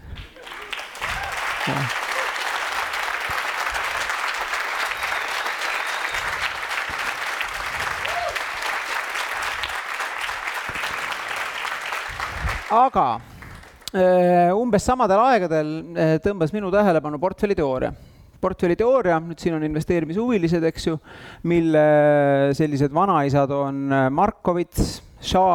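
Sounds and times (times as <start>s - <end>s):
audience applause: 0.0s - 13.8s
speech: 1.7s - 2.0s, 12.7s - 13.3s, 13.9s - 25.5s.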